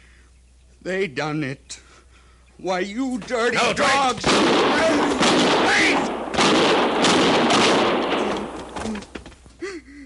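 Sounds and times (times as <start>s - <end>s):
speech: 0.8s - 1.9s, 2.6s - 7.5s
revolver gunshot sound effect: 4.2s - 8.8s.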